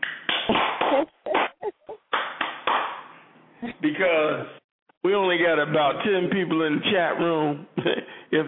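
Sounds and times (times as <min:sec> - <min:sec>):
hand claps: 0:00.0 - 0:03.1
speech: 0:03.8 - 0:08.4.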